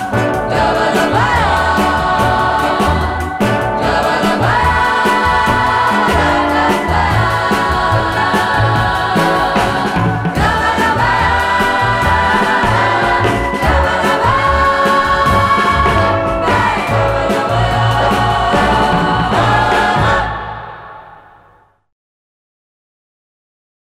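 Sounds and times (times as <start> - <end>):
dub bossa nova music: 0.0 - 20.9.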